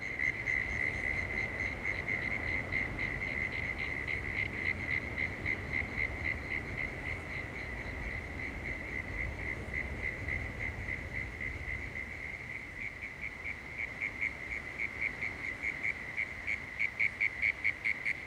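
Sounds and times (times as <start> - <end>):
crickets chirping at Woorim beach: 0.0 - 18.2.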